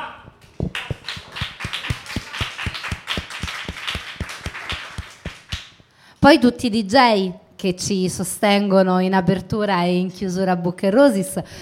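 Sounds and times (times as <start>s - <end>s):
audience applause: 0.6s - 5.7s
speech: 6.2s - 11.5s.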